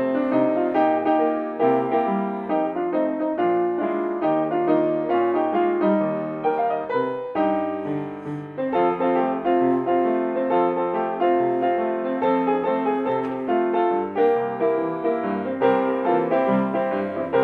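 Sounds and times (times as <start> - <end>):
song accompaniment: 0.0 - 17.4.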